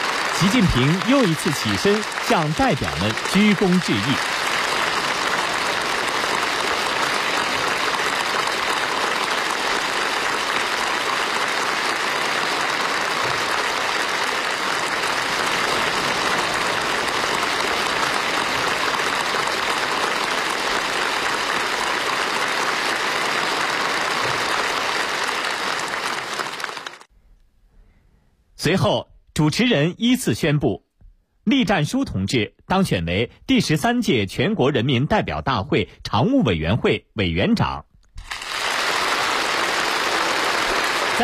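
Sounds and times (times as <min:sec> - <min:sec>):
warm applause in an assembly hall: 0:00.0 - 0:27.1, 0:37.6 - 0:41.2
speech: 0:00.4 - 0:04.3, 0:28.6 - 0:30.8, 0:31.4 - 0:37.9.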